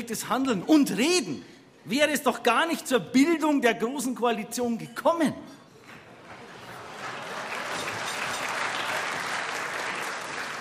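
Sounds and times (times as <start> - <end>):
speech: 0.0 - 5.6
thin applause: 5.9 - 10.6.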